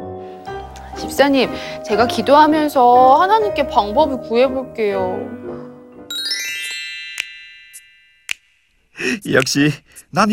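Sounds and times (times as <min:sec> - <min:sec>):
speech: 0:01.0 - 0:05.4, 0:09.0 - 0:10.3
email arrival notification chime: 0:06.1 - 0:08.3
sharp ticks: 0:09.3 - 0:10.1.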